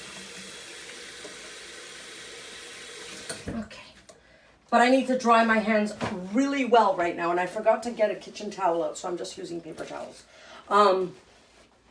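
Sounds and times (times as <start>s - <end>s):
tap water running while washing hands: 0.0s - 3.6s
speech: 3.3s - 4.0s, 4.7s - 11.2s.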